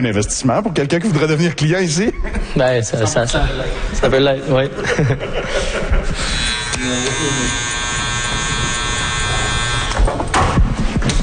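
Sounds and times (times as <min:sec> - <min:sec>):
speech: 0:00.0 - 0:07.8
laughter: 0:01.2 - 0:07.6
electric hair clippers buzzing in a barbershop: 0:06.2 - 0:10.6.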